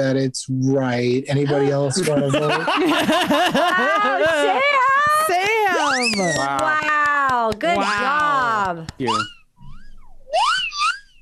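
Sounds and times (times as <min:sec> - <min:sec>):
speech: 0:00.0 - 0:09.4
laughter: 0:01.1 - 0:06.8
shrill whistle: 0:05.8 - 0:06.5, 0:09.1 - 0:11.2.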